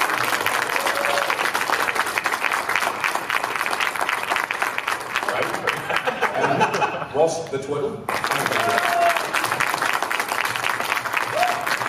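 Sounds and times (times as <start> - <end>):
audience applause: 0.0 - 7.0, 8.0 - 11.8
laughter: 5.6 - 7.3
speech: 7.2 - 9.0.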